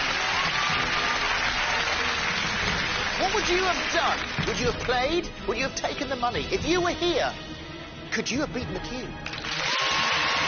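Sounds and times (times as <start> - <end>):
studio audience applause at a television game show: 0.0 - 5.0, 9.2 - 10.4
speech: 3.3 - 7.5, 8.1 - 9.4.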